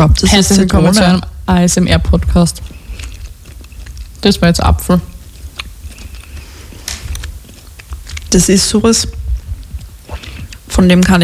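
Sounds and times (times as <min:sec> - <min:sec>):
speech: 0:00.0 - 0:02.8, 0:04.2 - 0:05.1, 0:08.3 - 0:09.2, 0:10.7 - 0:11.2
chewing gummy candy in ASMR session: 0:00.5 - 0:11.2
sharper wet mouth clicks: 0:02.6 - 0:04.2, 0:05.0 - 0:10.8.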